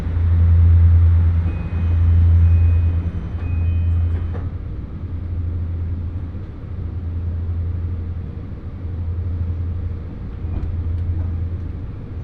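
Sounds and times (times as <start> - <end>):
Hōhi Main Line train motor hum: 0.0 - 12.2
faint clicks of the rails: 0.6 - 4.8, 10.0 - 12.2.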